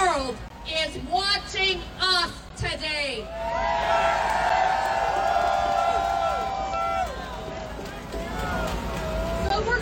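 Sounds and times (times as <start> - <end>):
speech: 0.1 - 4.2
outdoor crowd cheering: 3.2 - 9.5.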